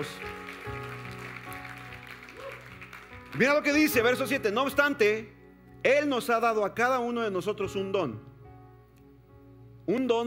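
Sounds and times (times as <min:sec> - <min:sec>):
speech: 0:00.0 - 0:00.8, 0:03.3 - 0:08.3, 0:09.9 - 0:10.2
audience applauding: 0:00.0 - 0:04.2.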